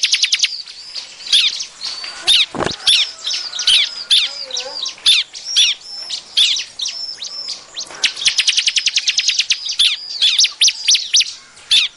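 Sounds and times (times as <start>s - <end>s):
bar-winged prinia chirping: 0.0s - 11.9s.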